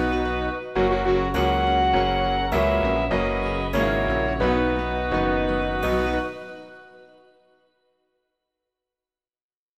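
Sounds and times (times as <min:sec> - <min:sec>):
instrumental music: 0:00.0 - 0:07.8.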